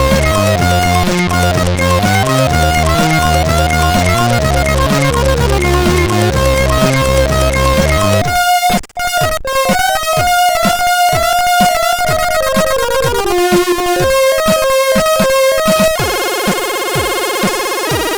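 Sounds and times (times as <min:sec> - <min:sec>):
chiptune music on 8580 SID chip: 0:00.0 - 0:18.1.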